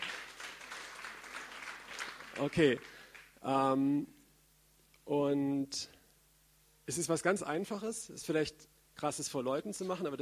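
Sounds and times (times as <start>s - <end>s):
applause: 0.0s - 3.4s
speech: 2.4s - 4.2s, 5.1s - 6.0s, 6.9s - 10.2s.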